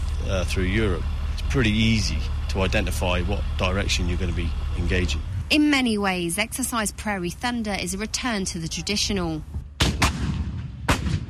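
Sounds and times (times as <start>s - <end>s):
speech: 0.3s - 9.6s
AS90 self-propelled artillery gun firing: 9.8s - 11.2s.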